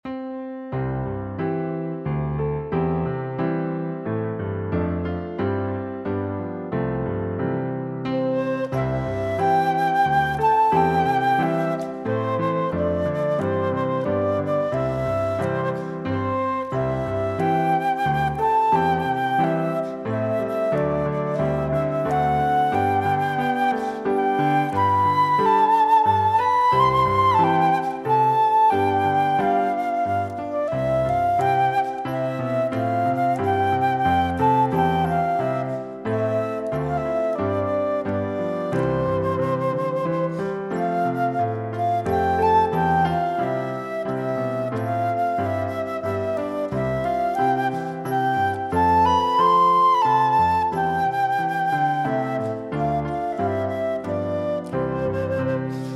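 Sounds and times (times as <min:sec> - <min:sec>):
instrumental melody track: 0:00.0 - 0:55.9.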